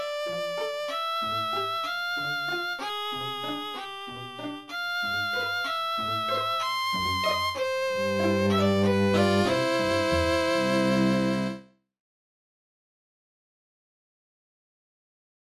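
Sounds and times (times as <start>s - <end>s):
string trio melody: 0.0s - 11.7s.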